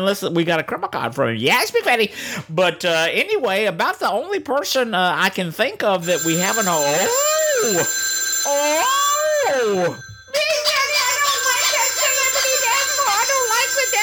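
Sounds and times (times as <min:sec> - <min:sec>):
speech: 0:00.0 - 0:08.9, 0:09.6 - 0:10.0
telephone ringing with electronic melody: 0:06.0 - 0:14.0.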